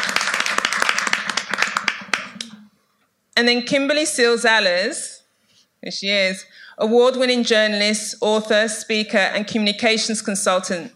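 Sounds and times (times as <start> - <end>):
audience applauding: 0.0 - 2.4
speech: 3.4 - 5.1, 5.8 - 10.9.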